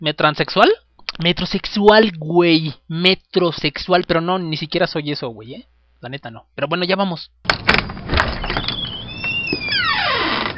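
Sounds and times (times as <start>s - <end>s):
speech: 0.0s - 8.6s
door being closed: 7.5s - 10.5s.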